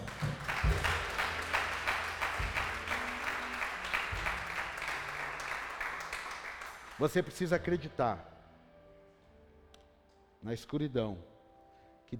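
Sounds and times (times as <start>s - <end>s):
audience applause: 0.0s - 7.4s
speech: 7.0s - 8.3s, 10.4s - 11.3s.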